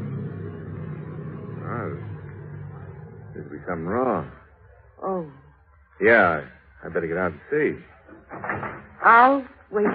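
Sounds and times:
choked car engine running rough: 0.0s - 4.8s
wavering whine: 0.0s - 6.0s
speech: 3.4s - 4.4s, 5.0s - 5.4s, 6.0s - 9.9s.

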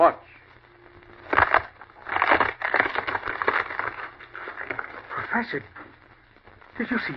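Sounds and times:
speech: 0.0s - 0.2s, 5.4s - 5.8s, 6.8s - 7.1s
large wooden log being shattered into splinters: 1.3s - 4.8s.

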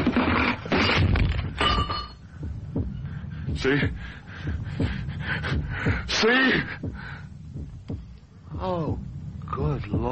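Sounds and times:
clock falling over and crashing: 0.0s - 2.2s
speech: 3.6s - 7.2s, 8.6s - 9.0s, 9.6s - 10.1s.

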